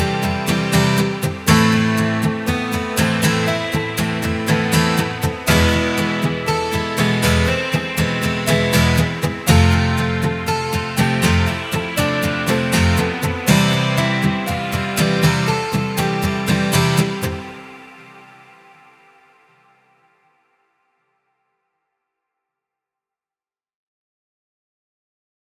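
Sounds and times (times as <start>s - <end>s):
instrumental acoustic guitar playing: 0.0s - 19.1s.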